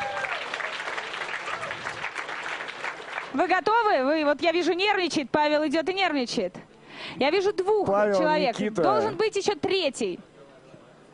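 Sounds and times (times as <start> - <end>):
audience applause: 0.0 - 3.4
speech: 3.4 - 10.3.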